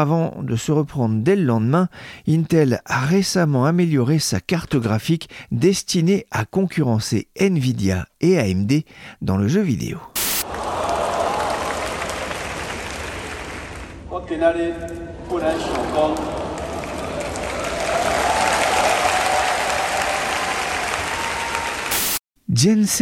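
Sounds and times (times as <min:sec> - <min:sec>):
speech: 0:00.0 - 0:10.1, 0:14.3 - 0:16.4, 0:22.6 - 0:22.9
crowd of students at National Taiwan University cheering and applauding Nvidia founder Jensen Huang: 0:10.4 - 0:14.0, 0:15.2 - 0:22.2.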